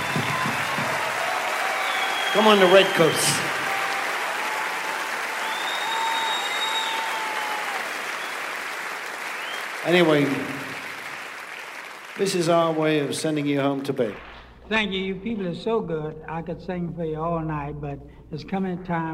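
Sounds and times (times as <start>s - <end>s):
audience applause: 0.0s - 14.5s
speech: 2.3s - 3.6s, 9.8s - 10.7s, 12.2s - 19.1s.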